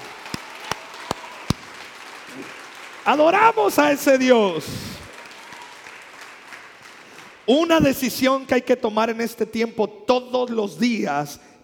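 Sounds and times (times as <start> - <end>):
audience applause: 0.0 - 7.5
speech: 2.3 - 4.9, 7.5 - 11.6.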